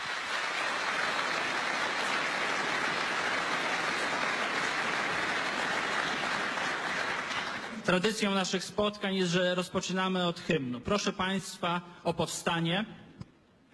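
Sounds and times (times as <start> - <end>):
audience applause: 0.0 - 7.8
speech: 7.9 - 13.0.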